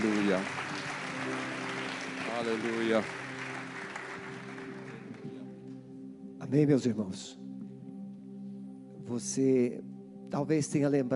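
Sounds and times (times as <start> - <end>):
audience applause: 0.0 - 5.5
speech: 0.3 - 0.7, 2.4 - 3.2, 6.5 - 7.4, 9.1 - 11.1.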